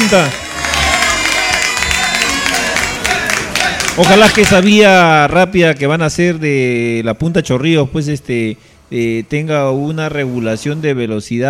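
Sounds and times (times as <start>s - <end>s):
applause and clapping: 0.0s - 4.8s
speech: 0.1s - 0.4s, 4.0s - 11.4s.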